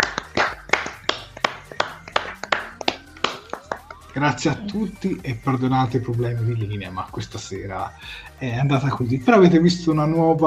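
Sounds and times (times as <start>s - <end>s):
hand claps from one or two people: 0.0s - 4.4s
speech: 4.2s - 10.4s.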